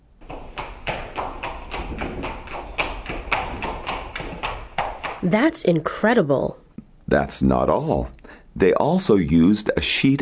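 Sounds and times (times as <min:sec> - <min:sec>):
hollow coconut shells clopping together imitating galloping horse hooves: 0:00.9 - 0:05.2
speech: 0:05.2 - 0:10.2.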